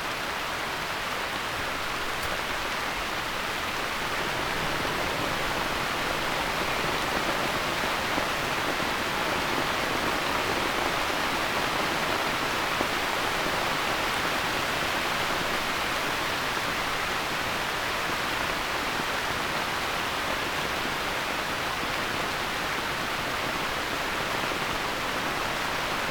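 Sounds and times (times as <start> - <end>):
rain on a palm umbrella: 0.0 - 26.0.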